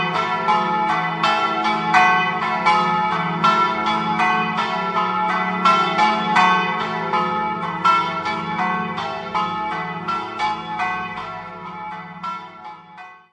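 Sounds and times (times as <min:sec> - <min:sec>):
bells ringing in Adorgnano: 0:00.0 - 0:13.3.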